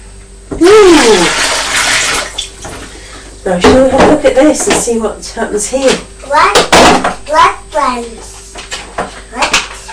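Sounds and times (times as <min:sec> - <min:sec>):
speech: 0:00.6 - 0:01.5, 0:03.4 - 0:08.3
water poured back into a white bowl: 0:00.9 - 0:02.4.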